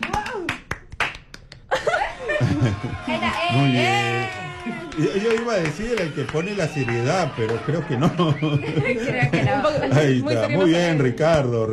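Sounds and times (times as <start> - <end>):
applause: 0.0 - 1.7, 2.6 - 8.9
laughter: 1.7 - 11.0
speech: 2.4 - 11.7.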